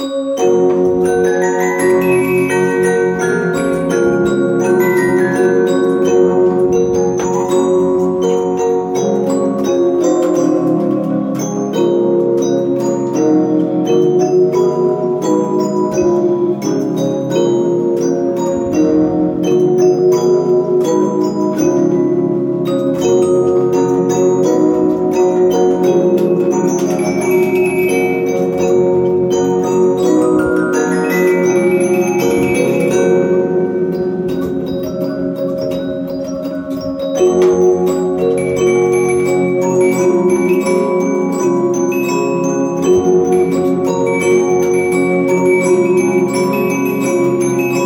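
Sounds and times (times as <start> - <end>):
Reginaphone music box playing: 0.0 - 47.8.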